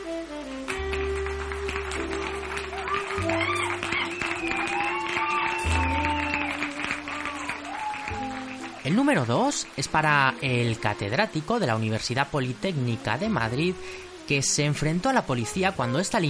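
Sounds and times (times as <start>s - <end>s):
loud music with sustained low notes and a wavering melody: 0.0s - 16.2s
crowd applause: 0.7s - 10.6s
speech: 9.0s - 16.2s.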